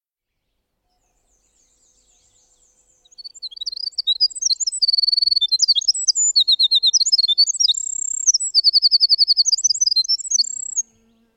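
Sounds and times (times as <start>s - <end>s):
winter wren song: 0.5s - 11.3s.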